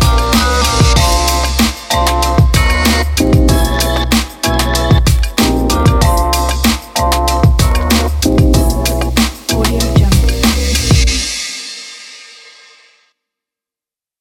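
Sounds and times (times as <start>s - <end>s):
chill hip hop music: 0.0s - 11.4s.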